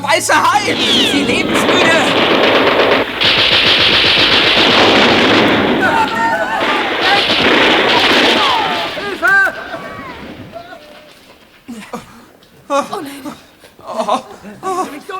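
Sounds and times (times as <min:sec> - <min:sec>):
people shouting: 0:00.0 - 0:11.8
speech: 0:00.1 - 0:02.3
excited voices crying out: 0:00.1 - 0:03.6, 0:04.5 - 0:11.4
automatic gunfire at armored glass: 0:00.4 - 0:11.6
laughter: 0:05.7 - 0:15.1.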